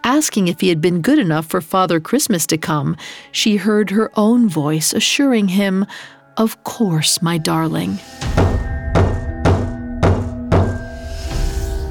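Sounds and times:
speech: 0.1s - 8.6s
slow knocking on a wooden front door: 8.4s - 10.9s.

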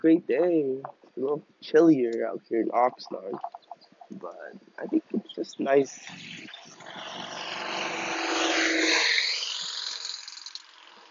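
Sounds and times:
speech: 0.0s - 7.4s
cars passing by: 5.9s - 11.0s.

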